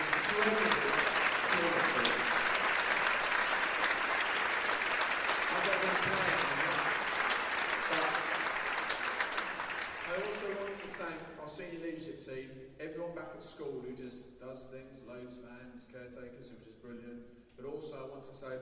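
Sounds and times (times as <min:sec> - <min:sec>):
audience applause: 0:00.0 - 0:11.1
speech: 0:17.8 - 0:18.6.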